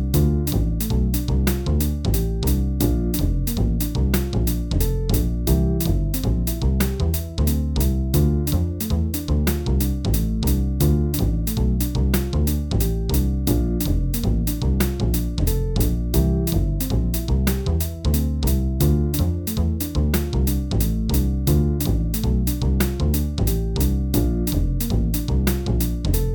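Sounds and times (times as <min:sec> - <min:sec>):
3 vs. 2 backing music: 0:00.0 - 0:26.3.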